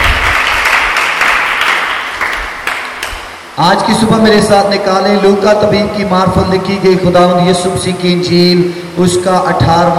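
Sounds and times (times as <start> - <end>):
loud applause from audience: 0.0 - 3.2
speech: 3.6 - 9.9.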